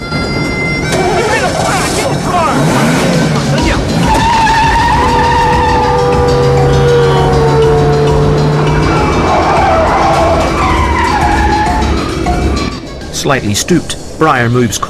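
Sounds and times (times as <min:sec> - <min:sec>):
car engine roaring during a chase: 0:00.2 - 0:14.8
car tires skidding and squealing: 0:00.8 - 0:12.7
speech: 0:13.2 - 0:14.8.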